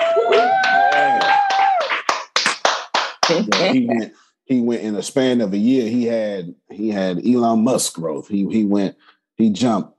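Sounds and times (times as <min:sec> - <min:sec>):
people clapping: 0:00.0 - 0:04.0
speech: 0:03.3 - 0:09.9.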